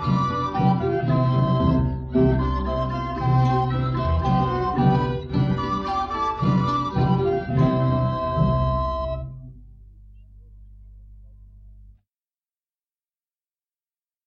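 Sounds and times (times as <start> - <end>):
historical dance music: 0.0 - 9.6.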